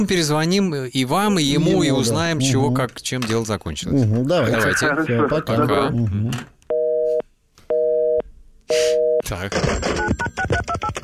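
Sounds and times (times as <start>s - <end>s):
speech: 0.0s - 6.5s, 8.7s - 11.0s
telephone busy signal: 6.7s - 9.2s.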